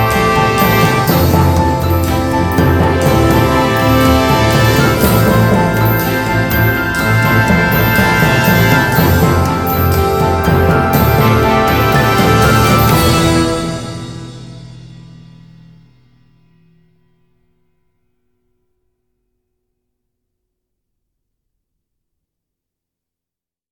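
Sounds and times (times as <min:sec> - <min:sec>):
instrumental music: 0:00.0 - 0:17.0.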